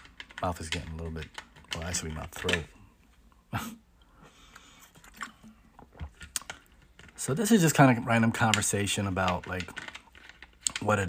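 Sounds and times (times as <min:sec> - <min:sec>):
speech: 0:00.4 - 0:02.8, 0:03.5 - 0:03.8, 0:07.2 - 0:09.9, 0:10.8 - 0:11.0
person drinking water: 0:04.0 - 0:06.7.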